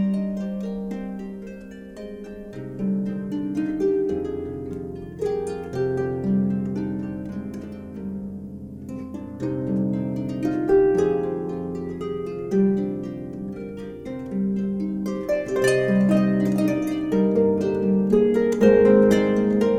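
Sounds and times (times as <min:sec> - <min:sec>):
Celtic harp playing: 0:00.0 - 0:19.7.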